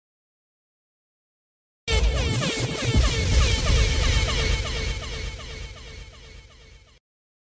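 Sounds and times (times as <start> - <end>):
DJ sound effects: 1.9 - 5.4.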